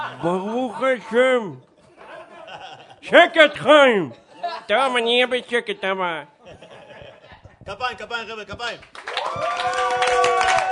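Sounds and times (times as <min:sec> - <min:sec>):
speech: 0:00.2 - 0:01.7, 0:03.0 - 0:06.3, 0:07.7 - 0:10.2
laughter: 0:01.7 - 0:03.2, 0:05.7 - 0:07.7
hand clapping: 0:08.6 - 0:10.7.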